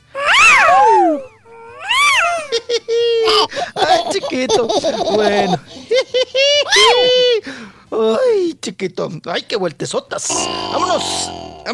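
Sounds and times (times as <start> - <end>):
person imitating a pop singer's high-pitched scream: 0.2 - 2.5, 6.6 - 7.3, 10.3 - 11.6
laughter: 2.5 - 7.4
speech: 4.3 - 6.1, 6.7 - 11.7.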